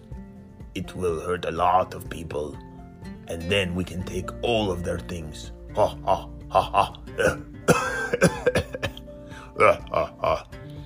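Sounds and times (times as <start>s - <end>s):
speech: 0.8s - 2.7s, 3.3s - 8.6s, 9.6s - 10.4s
person coughing from volcano smoke: 5.9s - 9.0s.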